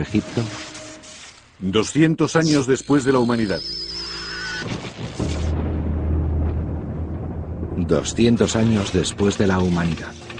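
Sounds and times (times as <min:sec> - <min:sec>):
speech: 0:00.0 - 0:00.7, 0:01.6 - 0:03.9, 0:07.9 - 0:10.2
thunderstorm rumbling in the desert in Las Vegas: 0:05.0 - 0:10.3.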